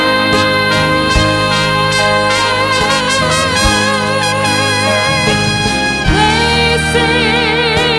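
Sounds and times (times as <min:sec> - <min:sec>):
trumpet excerpt: 0:00.1 - 0:07.8.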